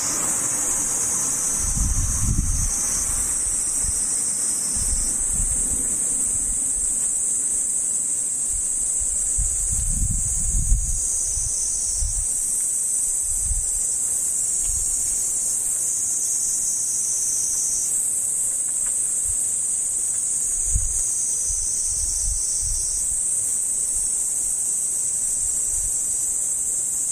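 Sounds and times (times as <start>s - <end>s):
low rumbling gusts: 0.0s - 7.0s, 8.4s - 12.4s
cicada buzzing: 0.0s - 27.1s.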